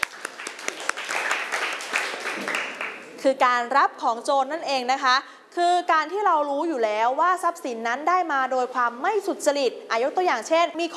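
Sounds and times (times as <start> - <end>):
students clapping: 0.0 - 3.2
speech: 3.2 - 10.9.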